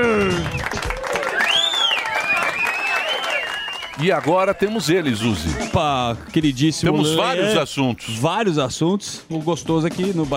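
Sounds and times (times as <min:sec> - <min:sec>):
high wavering cheers and whoops: 0:00.0 - 0:05.7
audience applause: 0:00.0 - 0:06.3
speech: 0:04.0 - 0:10.3.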